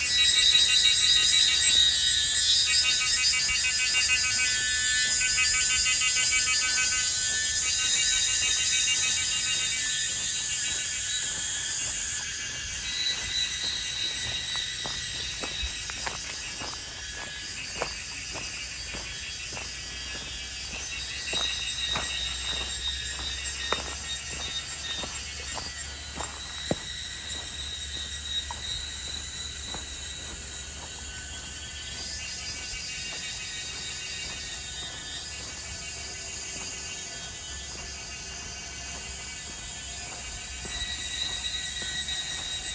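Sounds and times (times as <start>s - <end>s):
cicadas and insects chorus on Yangmingshan's Erziping trail: 0.0s - 42.7s.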